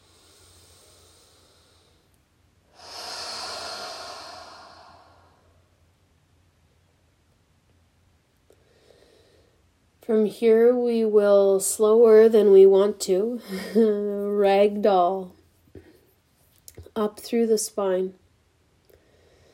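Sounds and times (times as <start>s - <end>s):
deep breathing during yoga meditation: 0.0s - 5.8s, 8.5s - 9.7s, 18.9s - 19.5s
speech: 10.1s - 15.4s, 17.0s - 18.2s.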